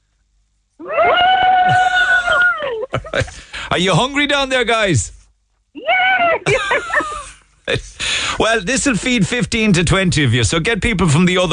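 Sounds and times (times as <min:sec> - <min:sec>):
group of people cheering: 0:00.8 - 0:02.9, 0:05.8 - 0:06.5
laughter: 0:00.8 - 0:03.6, 0:06.2 - 0:08.0
speech: 0:03.2 - 0:05.2, 0:07.7 - 0:11.5.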